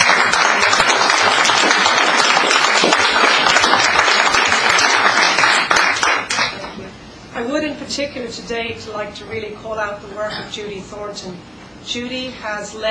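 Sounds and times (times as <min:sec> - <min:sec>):
council crowd applauding: 0:00.0 - 0:06.8
speech: 0:08.0 - 0:12.9.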